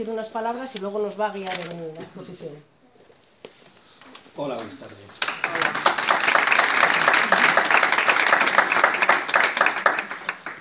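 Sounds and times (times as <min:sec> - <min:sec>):
speech: 0:00.0 - 0:02.7, 0:04.4 - 0:05.8
audience applause: 0:05.1 - 0:10.5.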